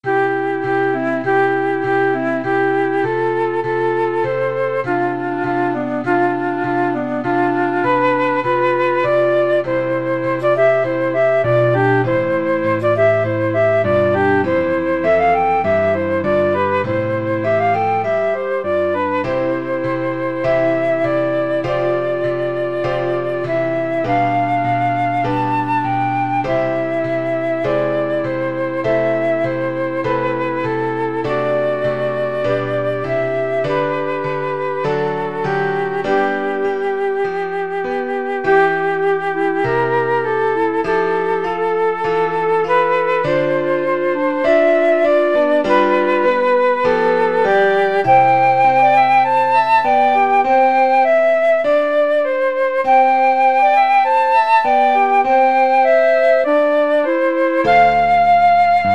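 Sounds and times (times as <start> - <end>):
flute and clarinet duet: 0.0 - 58.9.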